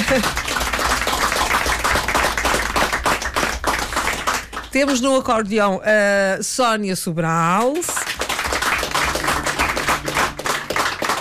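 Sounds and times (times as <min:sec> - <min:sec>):
audience applause: 0:00.0 - 0:05.0, 0:07.9 - 0:11.1
speech: 0:00.1 - 0:00.4, 0:04.7 - 0:08.1.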